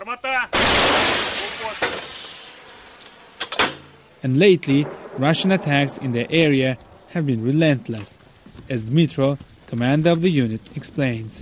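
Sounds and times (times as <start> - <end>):
old American M101 howitzer fired by Ukrainian forces: 0.5 - 2.9, 4.1 - 8.4
speech: 4.2 - 11.3.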